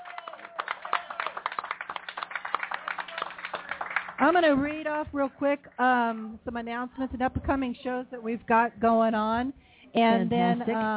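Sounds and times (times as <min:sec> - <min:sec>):
audience round of applause: 0:00.0 - 0:04.3
speech: 0:04.2 - 0:10.9.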